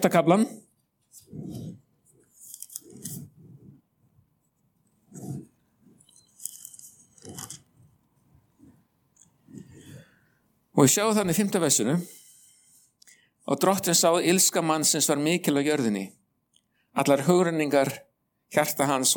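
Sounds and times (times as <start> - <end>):
speech: 0.0 - 1.8, 10.8 - 12.2, 13.5 - 16.2, 17.0 - 19.1
pages of a Bible being turned: 1.0 - 3.3.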